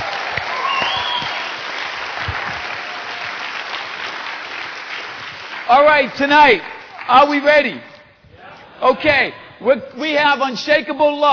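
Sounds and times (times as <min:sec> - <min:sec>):
audience clapping: 0:00.0 - 0:07.9
whistle or cheer: 0:00.4 - 0:01.7
speech: 0:05.7 - 0:07.9, 0:08.8 - 0:11.3.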